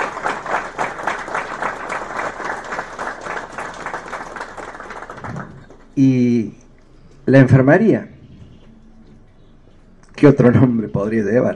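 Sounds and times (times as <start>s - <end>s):
audience applause: 0.0s - 6.1s
speech: 6.0s - 6.6s, 7.2s - 8.1s, 10.2s - 11.5s.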